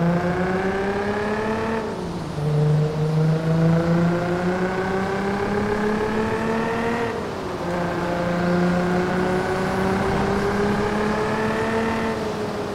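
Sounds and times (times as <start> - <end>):
Nissan 350Z coupe: 0.0 - 12.7.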